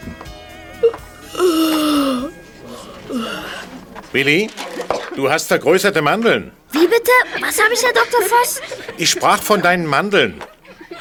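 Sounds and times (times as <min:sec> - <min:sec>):
boy yawning loudly: 0:01.3 - 0:03.7
speech: 0:04.1 - 0:04.6, 0:05.2 - 0:10.5
laughter: 0:07.3 - 0:11.0.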